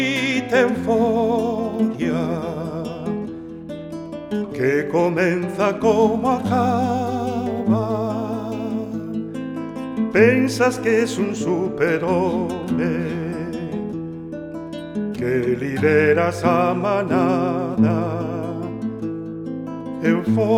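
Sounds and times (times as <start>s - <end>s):
person singing a euphoric poem: 0.0s - 3.4s, 4.4s - 9.2s, 10.0s - 13.9s, 15.2s - 19.0s, 20.0s - 20.5s.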